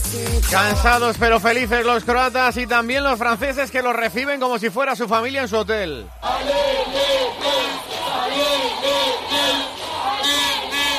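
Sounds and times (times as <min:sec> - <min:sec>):
speech: 0:00.1 - 0:07.8
hotel workers chanting for football team: 0:06.2 - 0:10.9.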